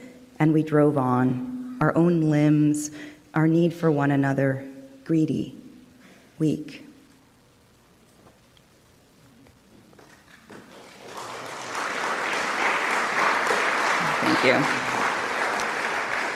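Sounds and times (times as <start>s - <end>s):
speech: 0.4s - 5.6s, 6.4s - 6.9s, 14.4s - 14.9s
audience clapping after a poem: 10.0s - 16.3s.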